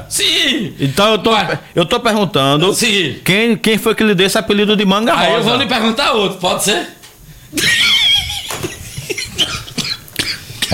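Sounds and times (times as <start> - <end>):
speech: 0.1 - 7.8
laughter: 7.5 - 9.8
man coughing: 9.1 - 10.7.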